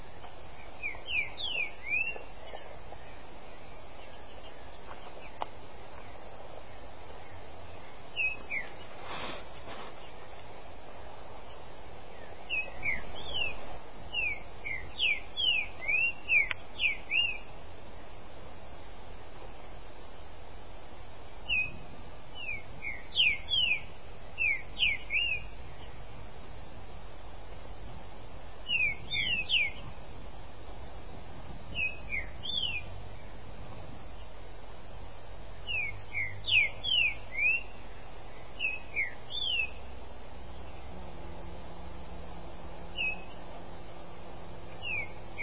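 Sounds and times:
Green-winged saltator singing whistled notes: 0:00.0 - 0:05.4, 0:06.0 - 0:09.0, 0:11.2 - 0:18.2, 0:21.4 - 0:26.8, 0:28.1 - 0:30.0, 0:31.7 - 0:34.3, 0:35.6 - 0:39.9, 0:42.9 - 0:43.5, 0:44.7 - 0:45.4
low background rumble: 0:00.0 - 0:45.4.

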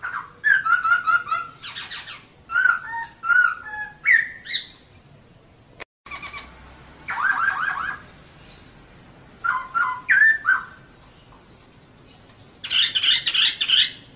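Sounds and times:
bird song: 0:00.0 - 0:05.2, 0:06.1 - 0:14.1.

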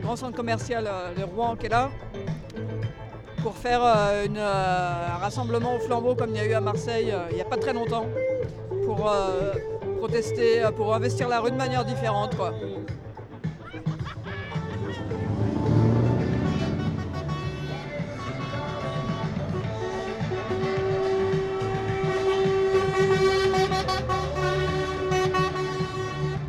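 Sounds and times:
speech: 0:00.0 - 0:08.3, 0:08.9 - 0:13.0
heavy trucks rumbling past a protest blockade on an industrial boulevard: 0:00.0 - 0:26.4
laughter: 0:10.6 - 0:26.4
truck air horns blaring, saluting protesters at a blockade in Sotteville-lès-Rouen: 0:14.5 - 0:26.4.

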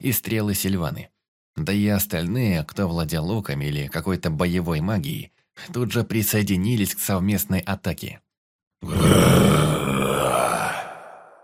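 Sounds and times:
speech: 0:00.0 - 0:10.7
monster growling: 0:08.8 - 0:11.4.

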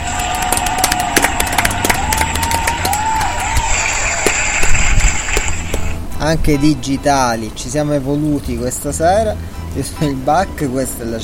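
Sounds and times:
applause sound effect: 0:00.0 - 0:05.9
speech: 0:06.2 - 0:11.2.

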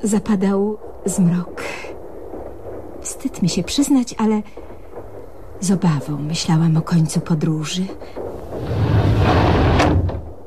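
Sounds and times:
speech: 0:00.0 - 0:01.6, 0:03.2 - 0:04.6, 0:05.6 - 0:08.2
door opening suddenly in a radio drama with a rumbling sweep: 0:08.4 - 0:10.4.

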